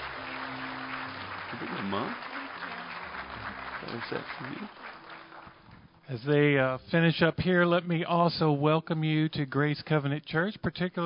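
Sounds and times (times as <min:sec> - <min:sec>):
audience applauding: 0:00.0 - 0:05.8
speech: 0:01.5 - 0:02.3, 0:03.8 - 0:05.0, 0:06.1 - 0:11.0.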